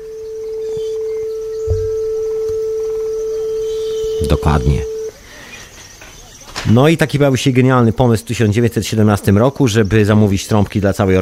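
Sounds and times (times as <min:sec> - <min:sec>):
faint low thumps: 0:00.0 - 0:05.1
steady pure tone at A 440: 0:00.0 - 0:05.1
speech: 0:04.3 - 0:04.9, 0:06.7 - 0:11.2.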